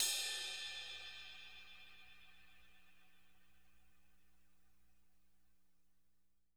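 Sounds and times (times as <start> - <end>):
crash cymbal tip hit: 0.0 - 2.8.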